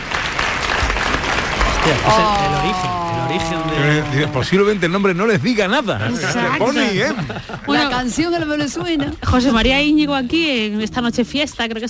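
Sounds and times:
audience applause: 0.0s - 7.8s
laughter: 1.8s - 9.9s
speech: 1.9s - 11.8s.

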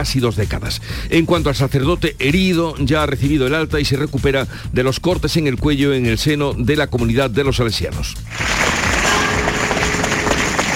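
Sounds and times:
speech: 0.0s - 8.9s
crowd applauding arrival of a hearse: 8.3s - 10.7s.

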